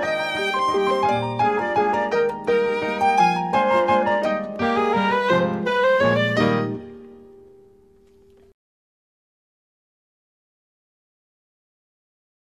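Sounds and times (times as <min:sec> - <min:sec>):
waltz music: 0:00.0 - 0:08.4.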